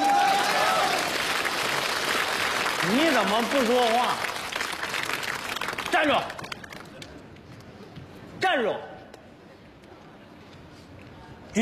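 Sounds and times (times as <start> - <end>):
audience applause: 0.0 - 7.3
speech: 2.9 - 4.3, 5.9 - 6.6, 8.5 - 8.9.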